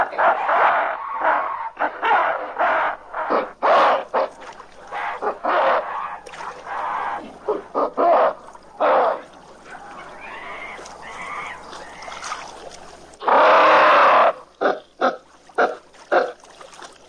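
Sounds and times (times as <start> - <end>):
apes long angry screaming: 0.0 - 12.3, 13.2 - 14.5.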